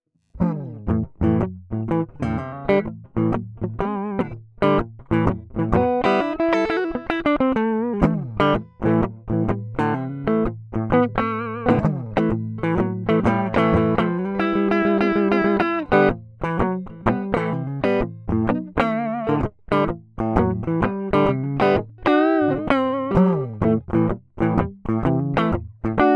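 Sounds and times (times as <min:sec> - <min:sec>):
blues music from an LP: 0:00.4 - 0:26.1.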